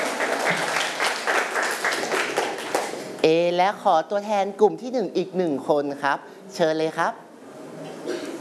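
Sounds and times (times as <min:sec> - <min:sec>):
classroom applause: 0:00.0 - 0:03.2
speech: 0:03.2 - 0:07.2.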